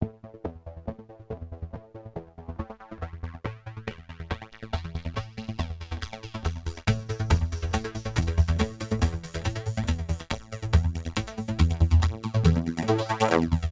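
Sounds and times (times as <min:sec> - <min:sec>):
techno music: 0:00.0 - 0:13.6.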